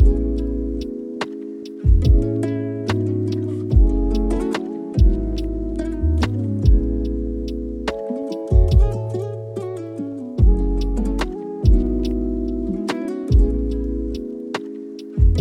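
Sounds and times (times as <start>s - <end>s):
sweet calm lofi chillhop music: 0.0s - 15.3s.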